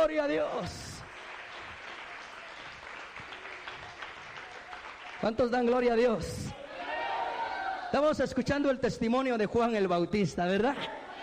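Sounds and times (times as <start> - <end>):
speech: 0.0 - 0.9, 5.2 - 6.6, 7.9 - 11.0
audience applause: 0.6 - 6.1.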